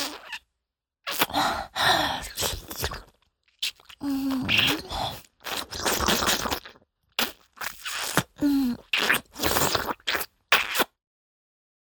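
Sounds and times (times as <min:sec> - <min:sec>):
wet licking sounds: 0:02.3 - 0:10.9.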